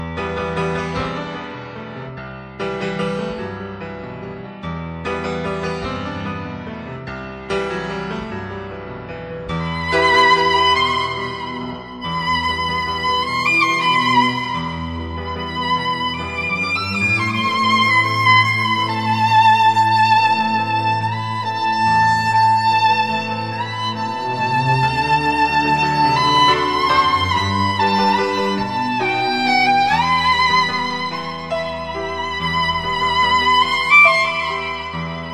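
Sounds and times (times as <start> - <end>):
violin: 0.0 - 35.3.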